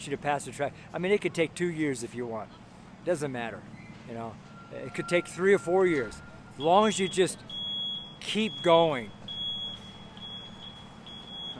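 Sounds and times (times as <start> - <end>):
speech: 0.0 - 7.6, 8.2 - 9.2
delivery truck high-pitched warning beep: 4.4 - 11.5.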